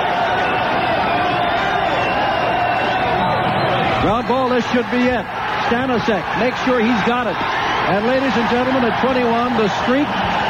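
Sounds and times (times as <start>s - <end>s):
ballpark crowd cheering: 0.0s - 10.4s
speech: 4.0s - 10.4s.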